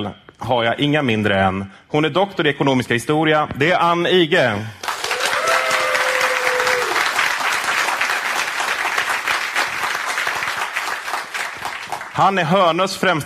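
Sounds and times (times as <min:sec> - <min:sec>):
speech: 0:00.0 - 0:04.8, 0:12.2 - 0:13.2
warm audience applause: 0:04.8 - 0:12.6.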